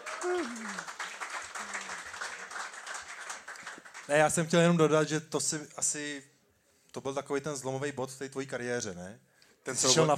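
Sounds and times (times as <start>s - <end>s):
audience applause: 0.0s - 4.3s
speech: 0.2s - 1.0s, 4.1s - 6.3s, 6.9s - 10.1s.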